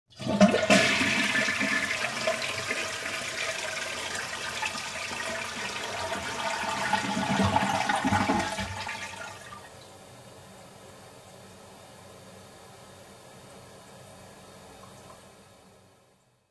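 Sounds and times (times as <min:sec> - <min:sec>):
toilet flushing: 0:00.1 - 0:09.8.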